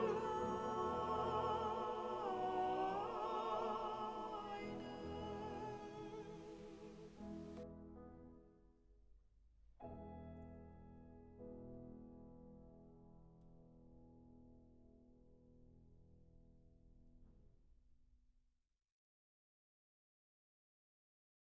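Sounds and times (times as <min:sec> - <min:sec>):
tenor singing: 0:00.0 - 0:07.6.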